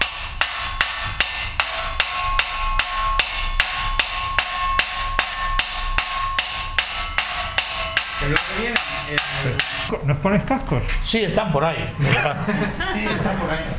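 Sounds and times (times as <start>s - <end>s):
hammering the edge of a bronze plate: 0.0s - 9.9s
speech: 8.3s - 13.7s
laughter: 9.4s - 13.7s.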